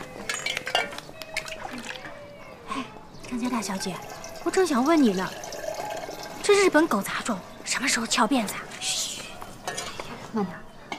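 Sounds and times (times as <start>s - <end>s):
crockery clinking: 0.0s - 1.5s, 3.8s - 7.4s, 9.6s - 10.2s
speech: 3.4s - 5.4s, 6.4s - 9.0s, 10.3s - 10.9s
boiling water poured from a kettle into a cup: 3.6s - 7.6s.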